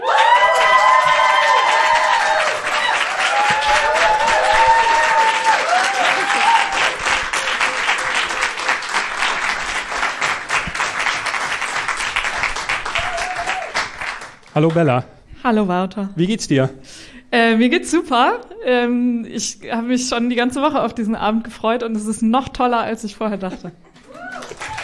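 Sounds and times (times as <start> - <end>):
audience applause: 0.0 - 15.0, 24.0 - 24.8
speech: 14.6 - 23.9.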